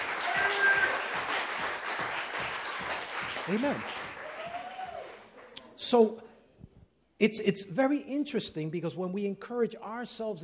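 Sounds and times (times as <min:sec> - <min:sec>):
audience clapping: 0:00.0 - 0:05.7
speech: 0:03.5 - 0:04.0, 0:05.9 - 0:06.3, 0:07.2 - 0:10.4.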